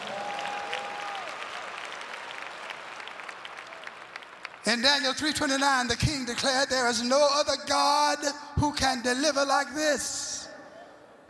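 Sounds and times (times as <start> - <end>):
audience clapping hands: 0.0 - 5.6
speech: 4.6 - 10.3.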